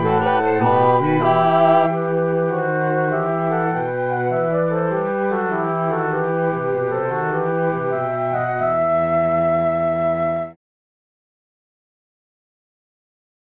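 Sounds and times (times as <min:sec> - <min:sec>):
full ensemble playing: 0:00.0 - 0:10.4.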